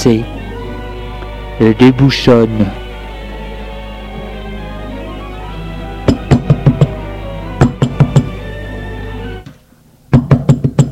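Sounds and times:
speech: 0.0 - 0.4, 1.6 - 2.8
knocking on a door: 6.1 - 7.0, 7.6 - 8.4, 10.1 - 10.9.

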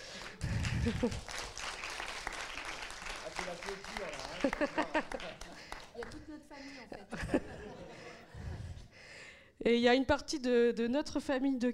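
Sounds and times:
crowd applauding: 0.0 - 6.4
laughter: 0.3 - 1.3, 3.4 - 6.0, 6.6 - 8.9
speech: 0.8 - 1.4, 3.4 - 8.4, 9.6 - 11.7.

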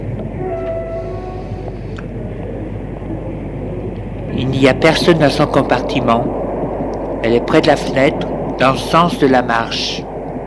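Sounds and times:
passenger train rolling with heavy low rumble: 0.0 - 10.3
high tonal whines: 0.0 - 10.4
faint metallic squeals: 0.4 - 2.0
speech: 4.5 - 6.4, 7.2 - 10.0.

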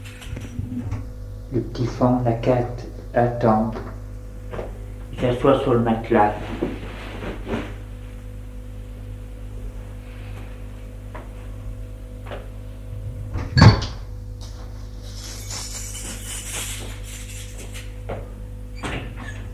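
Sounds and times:
steady low hum: 0.0 - 5.4, 6.3 - 15.9
speech: 1.5 - 3.9, 5.2 - 6.8
door being unlocked and opened: 13.5 - 14.0.

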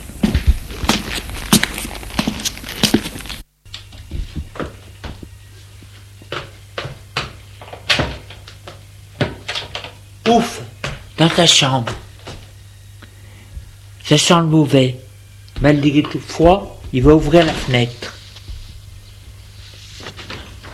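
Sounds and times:
footsteps of someone hurrying up a staircase: 0.0 - 12.6, 15.6 - 19.0
speech: 10.3 - 10.6, 11.2 - 12.0, 14.1 - 15.0, 15.6 - 18.2.

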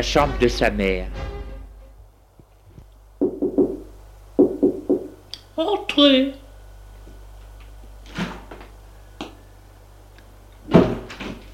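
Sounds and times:
speech: 0.0 - 1.3, 5.6 - 6.4
knocking on a bedroom door: 3.2 - 5.2.

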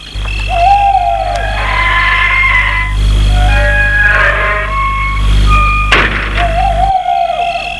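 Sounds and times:
steady low rumble like an idling engine: 0.0 - 7.7
metal gate swinging open with squeals and creaks: 1.2 - 7.1
gate sharp clunk: 5.9 - 6.6.

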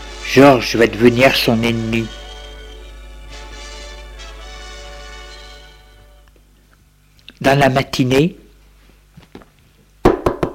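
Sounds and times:
speech: 0.3 - 2.2, 7.4 - 8.4
knocking on a door: 10.0 - 10.5.

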